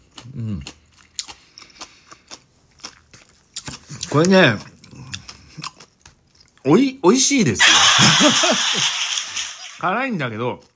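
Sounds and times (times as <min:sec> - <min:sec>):
crunchy chewing of fukujinzuke pickles: 0:00.0 - 0:06.6
speech: 0:00.4 - 0:00.8, 0:04.1 - 0:04.7, 0:06.7 - 0:09.1, 0:09.8 - 0:10.7
laughter: 0:07.6 - 0:09.8.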